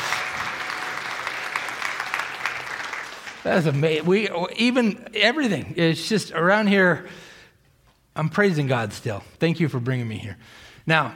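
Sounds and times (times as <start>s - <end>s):
audience applause: 0.0s - 4.0s
speech: 3.4s - 7.3s, 8.2s - 11.1s.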